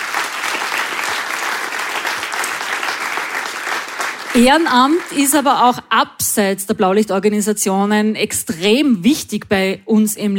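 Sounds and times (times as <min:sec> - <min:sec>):
audience applause: 0:00.0 - 0:05.5
speech: 0:04.4 - 0:10.3.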